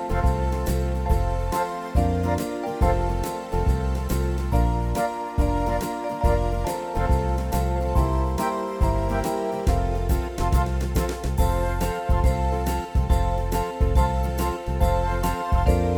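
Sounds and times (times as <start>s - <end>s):
Christmas song without piano: 0.0s - 15.9s.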